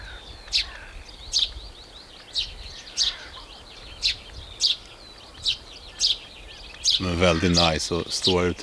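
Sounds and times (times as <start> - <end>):
tree sparrows chirping: 0.0 - 8.6
speech: 0.5 - 0.7, 7.0 - 8.6.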